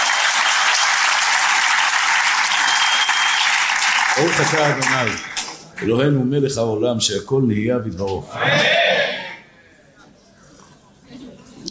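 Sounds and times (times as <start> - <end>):
audience applause: 0.0 - 6.0
speech: 4.2 - 8.9.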